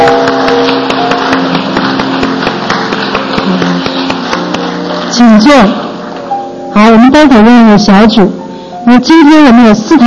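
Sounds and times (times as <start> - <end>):
people clapping: 0.0 - 6.3
speech: 5.2 - 5.8, 6.8 - 10.0.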